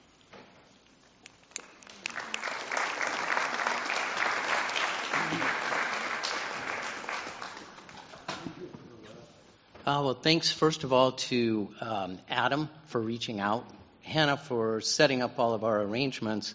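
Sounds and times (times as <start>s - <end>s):
audience applause welcoming two speakers on a Yom Kippur afternoon: 1.5s - 8.5s
speech: 9.9s - 16.5s.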